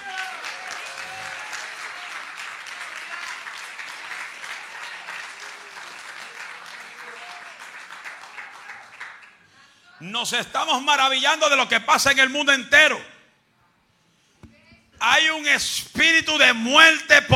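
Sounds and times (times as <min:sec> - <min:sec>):
loud audience applause: 0:00.0 - 0:09.6
speech: 0:10.0 - 0:13.1, 0:15.2 - 0:17.3.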